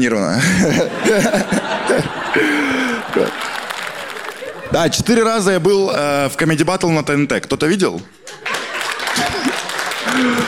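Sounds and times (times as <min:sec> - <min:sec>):
speech: 0:00.0 - 0:03.2, 0:04.8 - 0:08.2, 0:10.2 - 0:10.4
laughter: 0:00.4 - 0:05.7, 0:08.2 - 0:10.4
sparse applause from a small audience: 0:01.6 - 0:05.4, 0:08.4 - 0:10.4.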